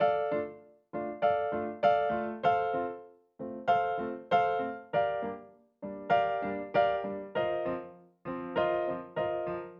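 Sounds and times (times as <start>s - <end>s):
acoustic piano: 0.0s - 9.7s.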